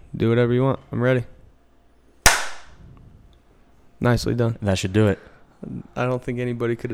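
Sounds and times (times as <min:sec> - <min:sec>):
speech: 0:00.2 - 0:01.4, 0:04.0 - 0:06.9
hand clap as audio sync cue: 0:02.3 - 0:02.8.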